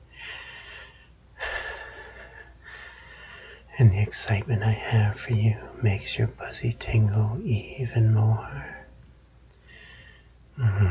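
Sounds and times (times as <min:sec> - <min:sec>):
person breathing softly: 0:00.1 - 0:03.7, 0:09.6 - 0:10.8
speech: 0:03.8 - 0:08.8, 0:10.6 - 0:10.8.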